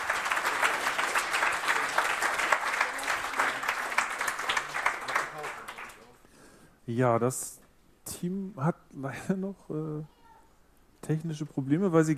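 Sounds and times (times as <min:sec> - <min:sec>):
audience applause: 0:00.0 - 0:06.2
speech: 0:06.9 - 0:10.2, 0:11.1 - 0:12.1.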